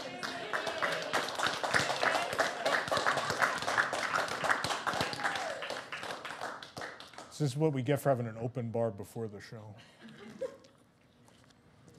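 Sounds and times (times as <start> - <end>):
audience clapping: 0.0 - 7.7
speech: 7.4 - 10.0.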